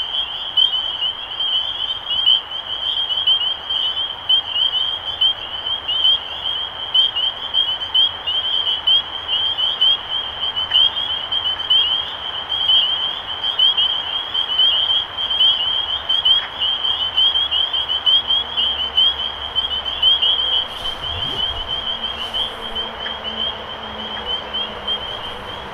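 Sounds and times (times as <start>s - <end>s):
spring peepers calling in a dense chorus of high rising peeps: 0.0s - 25.7s
steady background hiss: 19.8s - 25.7s
brief low whoosh: 20.4s - 23.4s.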